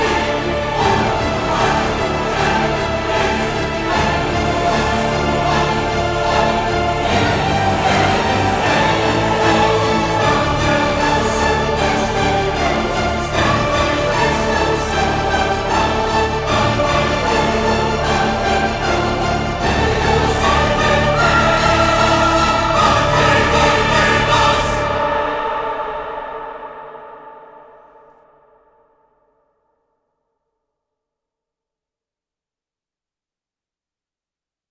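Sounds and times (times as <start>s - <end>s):
orchestra playing: 0.0s - 25.8s
choir singing: 0.0s - 28.4s.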